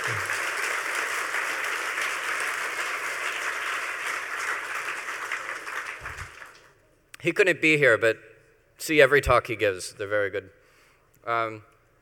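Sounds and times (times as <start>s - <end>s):
audience applause: 0.0s - 6.7s
speech: 7.2s - 10.6s, 11.2s - 11.7s.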